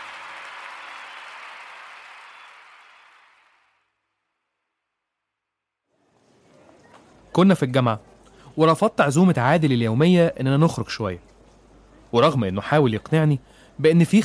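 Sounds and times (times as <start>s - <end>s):
loud applause: 0.0s - 4.0s
speech: 7.4s - 11.3s, 12.1s - 14.2s.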